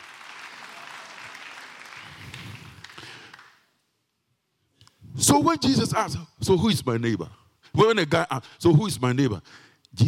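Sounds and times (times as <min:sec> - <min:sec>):
audience clapping: 0:00.0 - 0:03.7
speech: 0:05.2 - 0:10.0.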